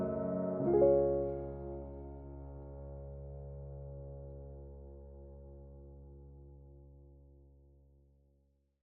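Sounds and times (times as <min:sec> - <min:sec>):
relaxing piano cover: 0:00.0 - 0:06.3.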